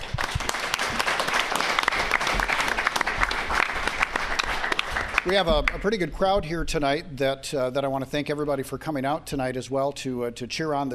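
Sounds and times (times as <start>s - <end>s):
audience applauding: 0.0s - 5.9s
speech: 5.2s - 10.9s.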